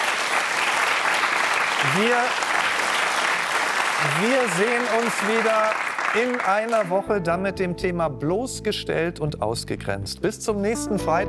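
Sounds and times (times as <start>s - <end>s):
audience applause: 0.0s - 7.0s
speech: 1.8s - 2.6s, 4.0s - 11.2s.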